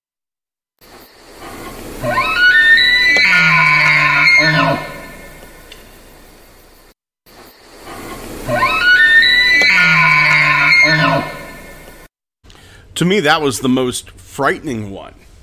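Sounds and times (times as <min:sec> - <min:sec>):
elk grunting call: 0:02.0 - 0:05.3, 0:08.5 - 0:11.8
speech: 0:13.0 - 0:15.3.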